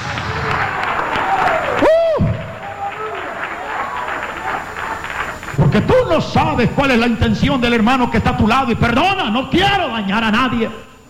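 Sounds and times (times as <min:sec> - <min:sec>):
church audience applause: 0:00.0 - 0:06.2
speech: 0:06.2 - 0:10.9.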